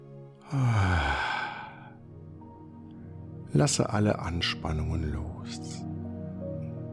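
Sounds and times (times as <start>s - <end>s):
deep exhale during a Kundalini yoga breathing exercise: 0.4s - 2.0s
speech: 0.5s - 1.1s, 3.6s - 5.9s.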